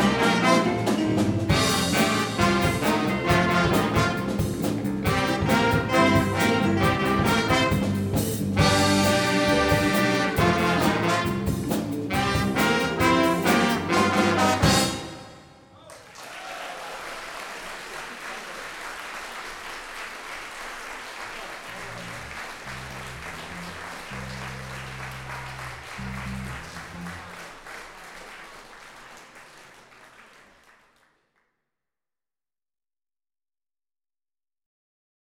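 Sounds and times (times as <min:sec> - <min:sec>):
music school ensemble playing traditional blues: 0:00.0 - 0:15.5, 0:21.7 - 0:27.8.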